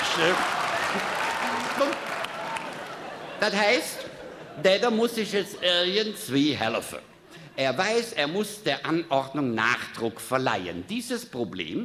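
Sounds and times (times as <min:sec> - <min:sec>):
cabaret audience applause: 0:00.0 - 0:03.6
laughter: 0:00.0 - 0:05.8
speech: 0:00.2 - 0:01.2, 0:03.4 - 0:04.0, 0:04.6 - 0:11.8.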